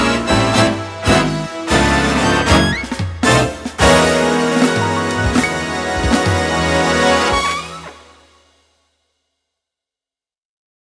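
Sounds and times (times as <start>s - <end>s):
big band: 0.0s - 8.6s.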